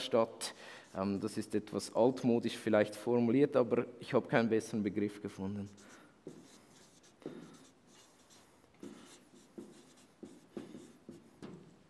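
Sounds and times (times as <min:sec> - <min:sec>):
speech: 0:00.0 - 0:06.4
pen scratching while hand-writing: 0:05.7 - 0:11.4.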